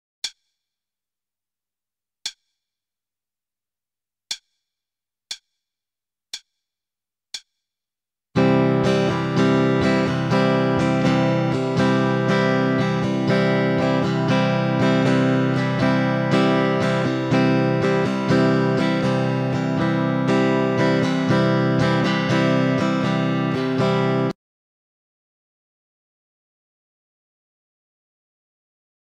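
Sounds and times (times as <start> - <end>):
starter guitar rhythm: 8.4 - 24.4.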